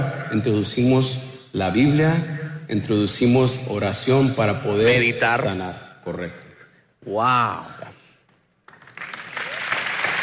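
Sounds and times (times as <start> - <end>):
speech: 0.3 - 6.4, 7.0 - 7.9
audience applause: 8.7 - 10.2.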